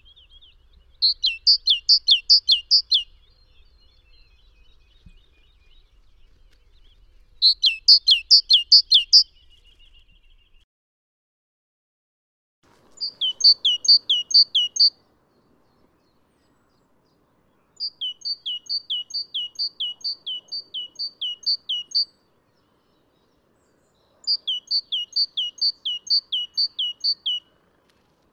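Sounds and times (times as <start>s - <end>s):
great tit singing: 0.2s - 5.7s, 7.4s - 9.2s, 13.0s - 27.7s.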